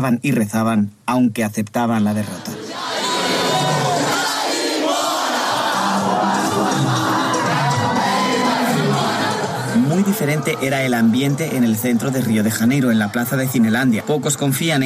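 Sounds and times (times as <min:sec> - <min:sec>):
speech: 0:00.0 - 0:02.5, 0:10.0 - 0:14.8
crowd celebrating in a city square: 0:02.4 - 0:14.8
scattered whoops and chants: 0:02.6 - 0:09.8.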